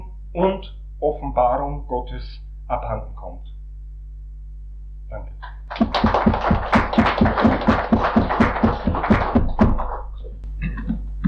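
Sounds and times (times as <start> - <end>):
speech: 0.4 - 3.6, 5.1 - 6.2
audience applause after a lecture: 5.4 - 10.1.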